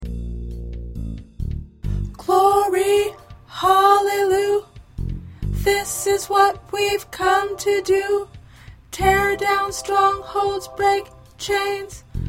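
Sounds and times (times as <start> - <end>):
first tenor voice singing: 2.2 - 4.7, 5.6 - 8.3, 8.9 - 12.1.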